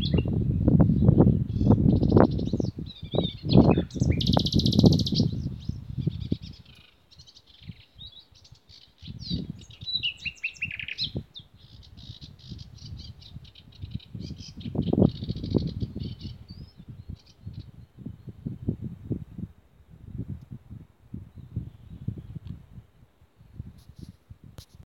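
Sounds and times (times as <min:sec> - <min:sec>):
birds twittering: 0:00.0 - 0:00.4, 0:01.0 - 0:18.4.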